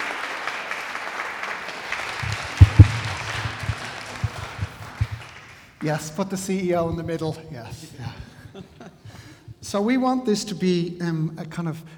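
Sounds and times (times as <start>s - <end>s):
audience applause: 0.0s - 6.1s
laughter: 1.8s - 9.8s
speech: 5.8s - 8.7s, 9.7s - 11.9s.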